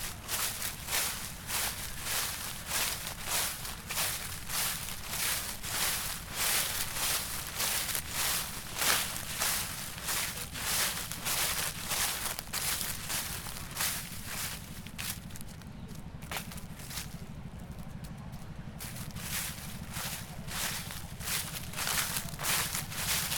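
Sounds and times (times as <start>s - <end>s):
dead leaves rustling: 0.0s - 17.8s, 18.8s - 23.3s.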